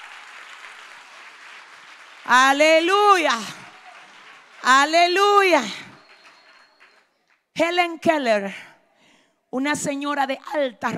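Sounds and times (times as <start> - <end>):
audience applause: 0.0 - 7.2
speech: 2.2 - 3.6, 4.6 - 5.9, 7.6 - 8.7, 9.5 - 10.9.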